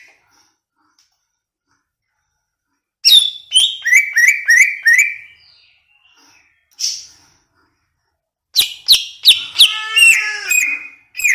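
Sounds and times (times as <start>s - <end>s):
greater green leafbird whistling song: 3.0s - 7.1s, 8.6s - 11.3s.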